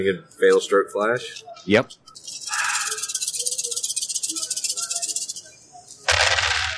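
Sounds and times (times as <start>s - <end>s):
speech: 0.0s - 2.4s
large handful of dice rattling and rolling: 2.2s - 5.4s, 6.0s - 6.7s.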